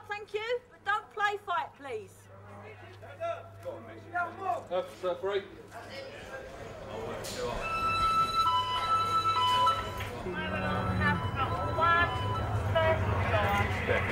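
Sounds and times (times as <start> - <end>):
people talking and calling out: 0.0 - 14.0
speech: 1.9 - 8.0, 12.8 - 14.0
prison fire alarm sounding: 7.6 - 13.2.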